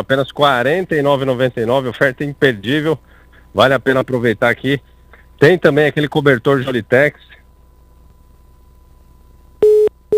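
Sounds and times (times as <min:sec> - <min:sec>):
speech: 0:00.0 - 0:07.4
telephone busy tone after a dropped call: 0:09.6 - 0:10.1.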